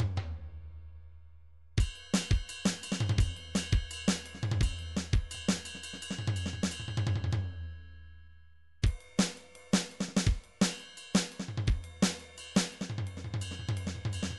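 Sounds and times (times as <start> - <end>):
MIDI drum cymbal: 1.8 - 7.5, 8.8 - 14.3.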